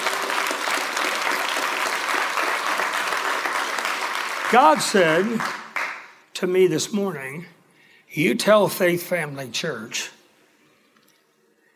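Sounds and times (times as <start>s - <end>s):
audience clapping once: 0.0s - 6.2s
speech: 4.5s - 5.6s, 6.4s - 10.1s.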